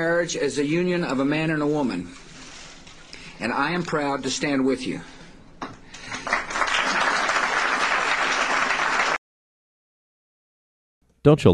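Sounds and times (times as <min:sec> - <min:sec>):
speech: 0:00.0 - 0:02.2, 0:03.4 - 0:05.2, 0:11.2 - 0:11.5
large audience applause: 0:06.0 - 0:09.2.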